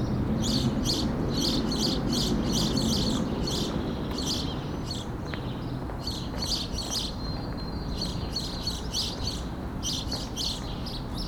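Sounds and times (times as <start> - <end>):
house sparrow chirps: 0.4 - 11.2.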